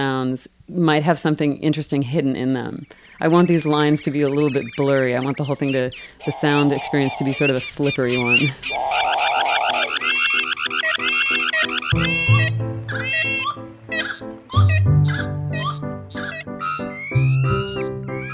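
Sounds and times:
speech: 0.0s - 9.2s, 11.9s - 15.6s
musical piece built from car alarm sounds: 9.8s - 18.3s.

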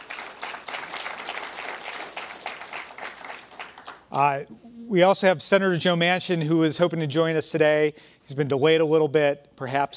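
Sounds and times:
audience applause welcoming two senators at an opioid crisis event: 0.0s - 4.3s
speech: 4.1s - 9.9s.

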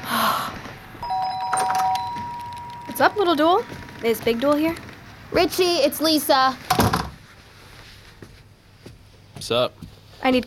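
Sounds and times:
electronic doorbell chime: 1.0s - 4.0s
speech: 3.0s - 6.6s, 9.5s - 10.4s.

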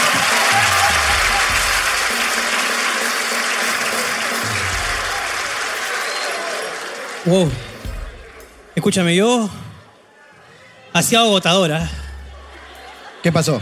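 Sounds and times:
laughter: 0.0s - 2.7s, 11.8s - 13.6s
audience applause: 0.0s - 8.8s
speech: 7.3s - 7.7s, 8.8s - 9.6s, 11.0s - 12.0s, 13.2s - 13.6s.

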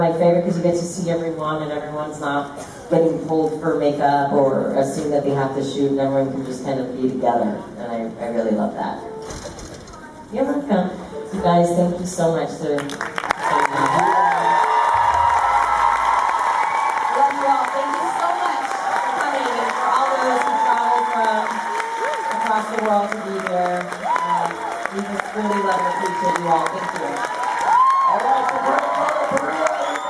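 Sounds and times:
speech: 0.0s - 9.1s, 10.3s - 13.8s
convention audience clapping at the Once Upon a Time Official Convention 2017: 12.8s - 30.0s.

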